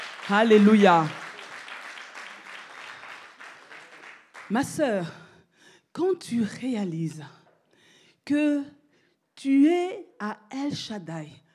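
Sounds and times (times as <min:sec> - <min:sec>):
congregation in church applauding in praise: 0:00.0 - 0:04.8
speech: 0:00.3 - 0:01.2, 0:04.5 - 0:05.2, 0:06.0 - 0:07.4, 0:08.3 - 0:08.8, 0:09.4 - 0:11.4.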